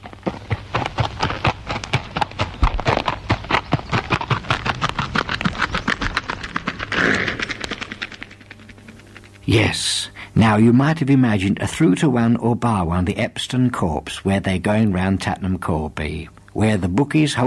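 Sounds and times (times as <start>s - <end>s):
horse hooves clip-clopping: 0.0s - 9.7s
speech: 9.5s - 17.4s.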